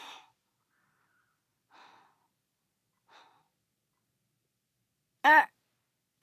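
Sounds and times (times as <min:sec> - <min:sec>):
young boy grunting: 0:05.2 - 0:05.5.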